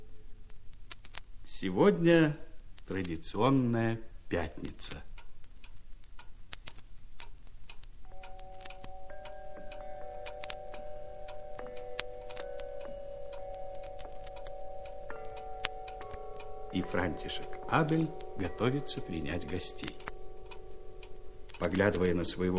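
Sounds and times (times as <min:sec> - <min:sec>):
speech: 0:01.6 - 0:05.1, 0:16.8 - 0:20.1, 0:21.6 - 0:22.5
several house clocks ticking as they are put away into a cupboard: 0:07.2 - 0:22.5
steady mid-pitched ringing tone: 0:08.1 - 0:22.5.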